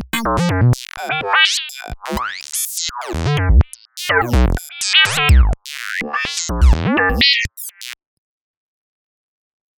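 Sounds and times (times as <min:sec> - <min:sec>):
synth lead: 0:00.2 - 0:07.9.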